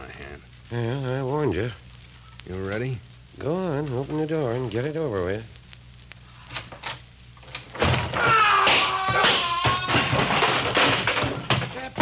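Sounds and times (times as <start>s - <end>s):
speech: 0.2s - 1.8s, 2.4s - 5.6s
person falling to the floor: 7.8s - 12.0s.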